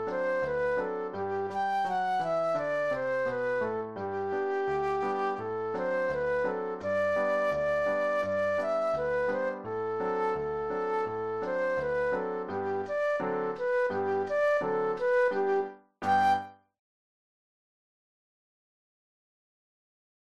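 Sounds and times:
classical flute solo: 0.0s - 16.6s.

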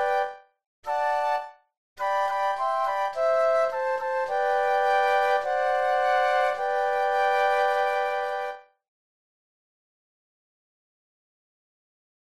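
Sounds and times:
flute trio playing: 0.0s - 8.7s.

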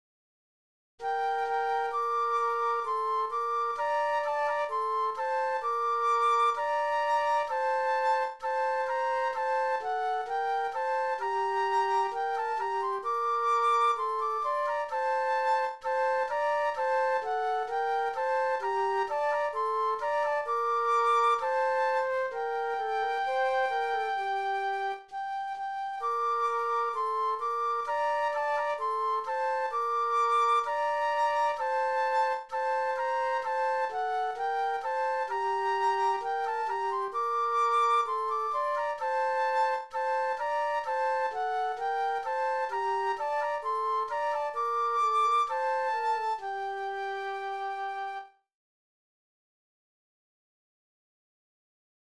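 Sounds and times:
flute duet: 1.0s - 48.5s.

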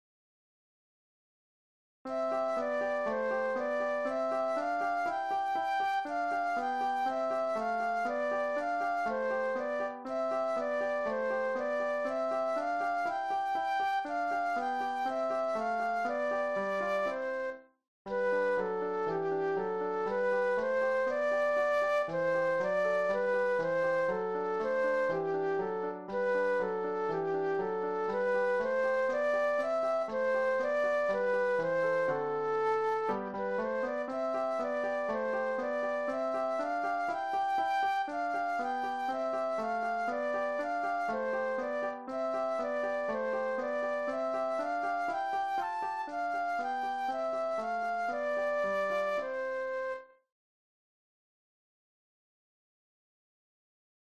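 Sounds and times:
flute solo: 2.1s - 50.3s.

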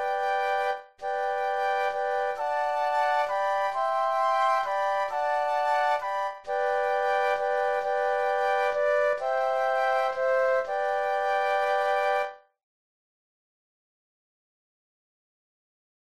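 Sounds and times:
flute trio playing: 0.0s - 12.4s.

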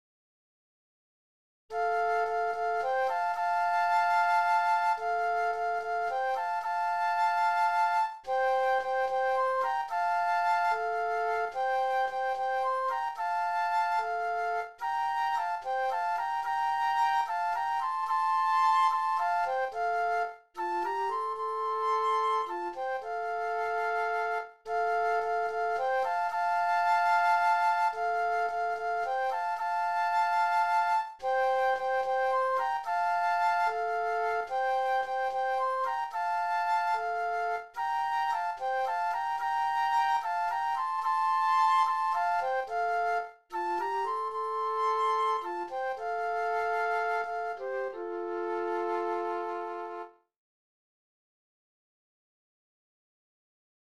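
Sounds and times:
flute duet: 1.7s - 50.3s.

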